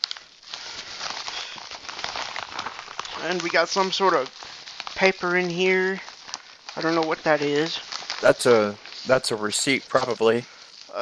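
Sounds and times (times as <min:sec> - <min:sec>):
bubble wrap packaging being handled: 0:00.0 - 0:11.0
speech: 0:03.2 - 0:04.4, 0:05.0 - 0:06.1, 0:06.8 - 0:11.0.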